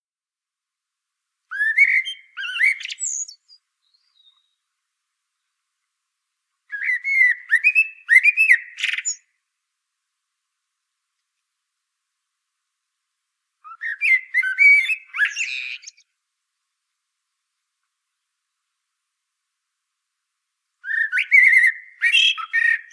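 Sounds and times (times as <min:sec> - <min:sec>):
common blackbird singing: 0:01.5 - 0:04.6, 0:06.7 - 0:09.3, 0:13.7 - 0:16.0, 0:20.8 - 0:22.9.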